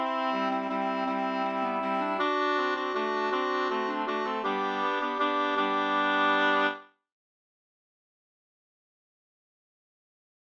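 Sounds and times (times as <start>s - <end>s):
two-part wedding waltz: 0.0s - 6.8s.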